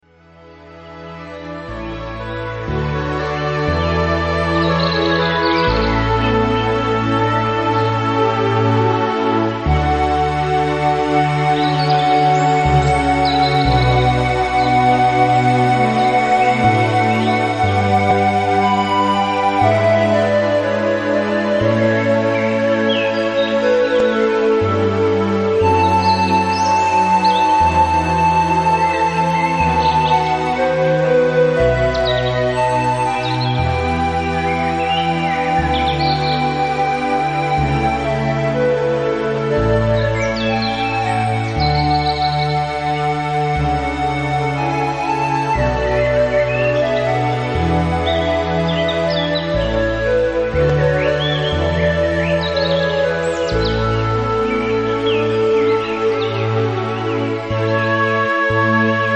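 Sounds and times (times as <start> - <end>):
spring morning relaxation music: 0.0 - 59.1.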